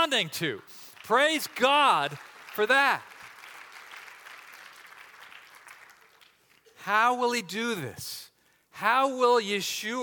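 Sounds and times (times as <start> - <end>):
speech: 0.0 - 3.1, 6.8 - 8.2, 8.8 - 10.0
audience applause: 1.0 - 6.6.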